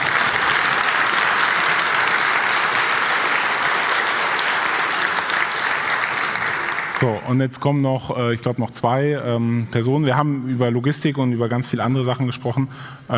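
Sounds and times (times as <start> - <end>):
audience applause: 0.0 - 7.2
speech: 7.0 - 13.1.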